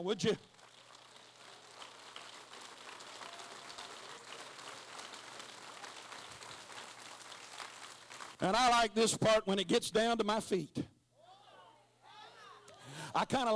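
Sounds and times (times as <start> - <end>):
speech: 0.0 - 0.5, 8.4 - 10.9, 13.2 - 13.5
audience clapping hands: 0.0 - 8.8.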